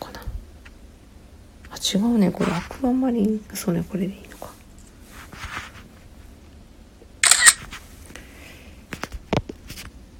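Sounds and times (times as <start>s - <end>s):
speech: 1.8s - 4.6s
camera shutter clicking: 7.2s - 7.7s.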